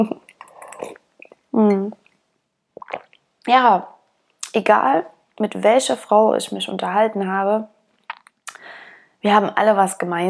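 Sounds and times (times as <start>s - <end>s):
speech: 0.0s - 0.2s, 1.6s - 2.0s, 3.4s - 3.9s, 4.5s - 7.7s, 8.6s - 10.2s
person drinking: 0.2s - 2.1s, 2.8s - 3.2s, 8.1s - 8.6s.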